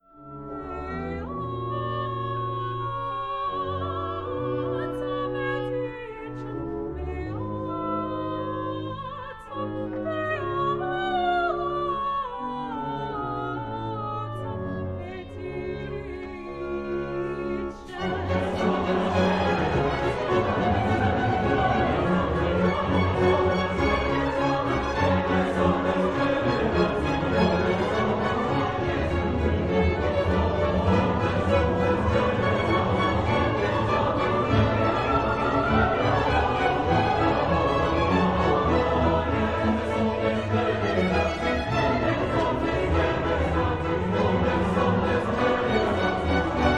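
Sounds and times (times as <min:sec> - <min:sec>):
choir singing: 0:00.0 - 0:46.7.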